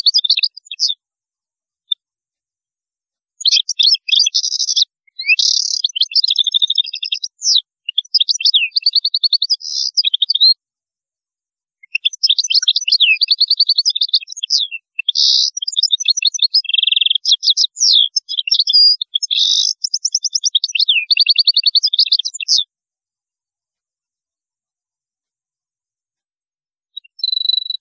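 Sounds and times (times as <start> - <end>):
European goldfinch twittering song with buzzy trills: 0.0 - 1.0, 3.4 - 10.6, 11.8 - 22.7, 27.0 - 27.7.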